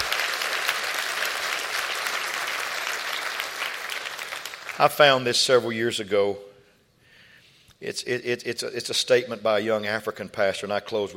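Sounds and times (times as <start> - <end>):
audience clapping hands: 0.0 - 5.3
speech: 4.8 - 6.5, 7.8 - 11.1.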